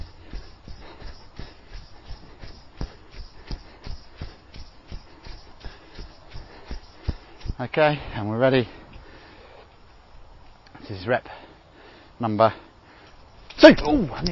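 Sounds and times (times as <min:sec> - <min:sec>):
footsteps walking briskly through squelchy mud: 0:00.0 - 0:07.8
speech: 0:07.6 - 0:08.8, 0:10.9 - 0:11.4, 0:12.2 - 0:12.7, 0:13.6 - 0:14.3.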